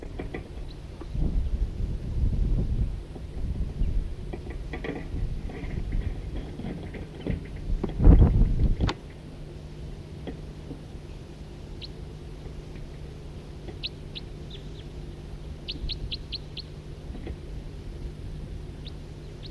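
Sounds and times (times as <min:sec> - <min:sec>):
hum: 0:00.0 - 0:19.4
birds chirping in two different call types: 0:13.7 - 0:15.0, 0:15.6 - 0:16.7.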